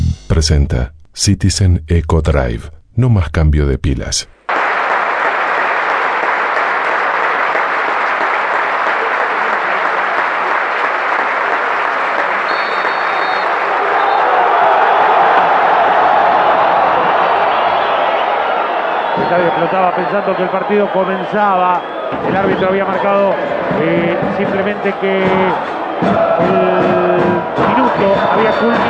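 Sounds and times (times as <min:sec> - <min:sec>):
speech: 0:00.3 - 0:04.4, 0:19.4 - 0:28.8
stadium applause: 0:04.5 - 0:28.8
stadium whistles: 0:12.2 - 0:14.4, 0:17.5 - 0:22.8.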